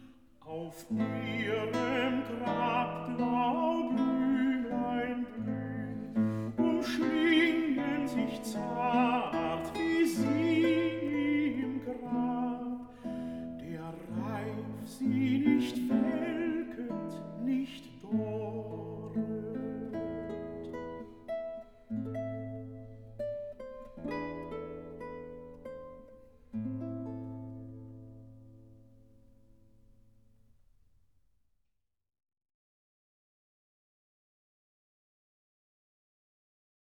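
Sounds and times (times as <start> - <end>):
Alsatian folk song: 0.0 - 28.5.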